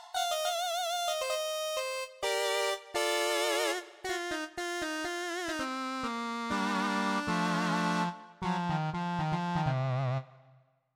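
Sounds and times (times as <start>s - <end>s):
lead melody: 0.2s - 10.3s.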